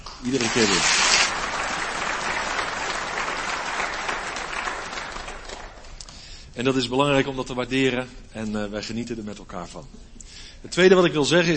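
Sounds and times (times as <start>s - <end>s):
applause for the music group: 0.0s - 6.3s
speech: 0.2s - 1.2s, 6.6s - 11.5s.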